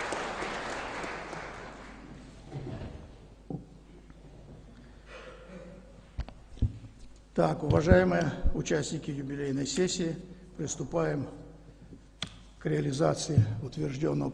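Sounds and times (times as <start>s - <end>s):
prolonged stormy applause: 0.0s - 2.1s
speech: 7.4s - 11.4s, 12.6s - 14.3s.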